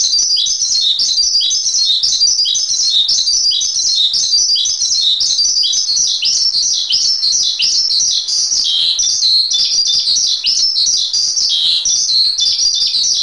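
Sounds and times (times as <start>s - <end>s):
Asian pied starling singing: 0.0s - 13.2s.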